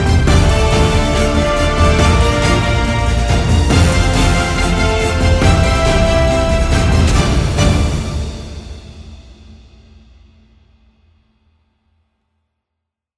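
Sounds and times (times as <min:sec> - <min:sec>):
intro music: 0:00.0 - 0:09.9.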